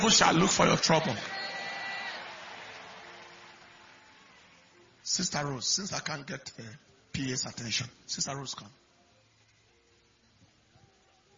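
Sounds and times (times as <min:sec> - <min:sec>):
speech: 0:00.0 - 0:01.4, 0:05.2 - 0:08.8
audience clapping hands: 0:00.0 - 0:04.7.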